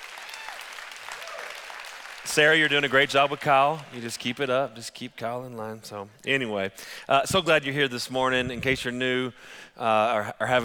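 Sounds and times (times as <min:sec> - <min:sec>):
audience clapping hands: 0:00.0 - 0:04.6
speech: 0:02.2 - 0:10.6.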